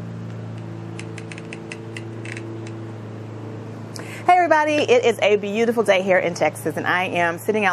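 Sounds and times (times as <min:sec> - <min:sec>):
lawn mowers mowing grass: 0:00.0 - 0:05.0
speech: 0:04.4 - 0:07.7.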